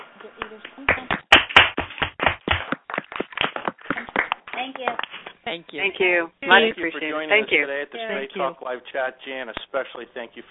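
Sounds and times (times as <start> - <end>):
speech: 0.2 - 1.2, 4.6 - 10.5
audience applause: 1.6 - 5.1.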